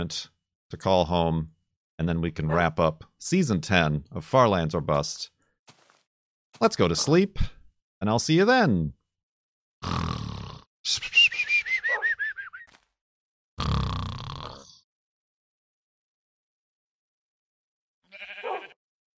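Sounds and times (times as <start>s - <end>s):
speech: 0.0s - 5.4s, 6.6s - 9.0s, 9.8s - 11.2s
video game dog Wolfie woofing: 11.9s - 12.1s
video game sheep bleating: 18.0s - 18.8s.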